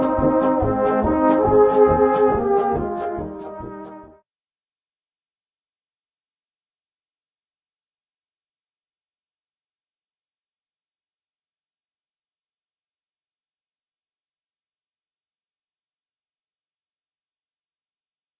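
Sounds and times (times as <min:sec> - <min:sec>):
polka music: 0:00.0 - 0:04.2.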